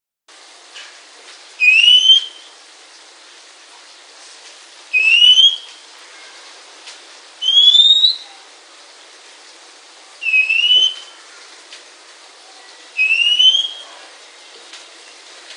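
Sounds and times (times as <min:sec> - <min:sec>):
Oriental magpie-robin calls: 0:01.6 - 0:02.5, 0:04.9 - 0:05.8, 0:07.4 - 0:08.3, 0:10.2 - 0:11.1, 0:13.0 - 0:13.8.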